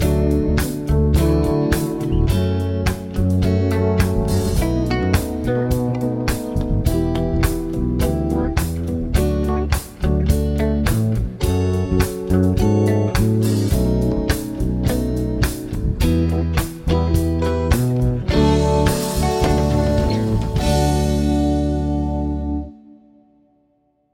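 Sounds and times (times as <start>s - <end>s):
chord progressions with applied chords: 0.0s - 23.8s.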